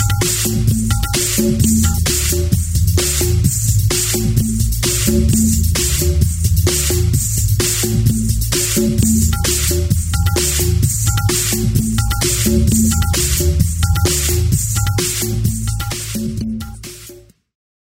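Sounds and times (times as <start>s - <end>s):
Bollywood-themed drum and bass DJ music: 0.0s - 17.3s.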